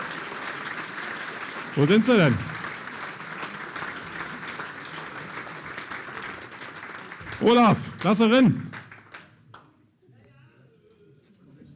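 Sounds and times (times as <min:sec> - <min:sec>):
audience applause welcoming a group on stage: 0:00.0 - 0:09.2
speech: 0:01.8 - 0:02.5, 0:07.4 - 0:08.7.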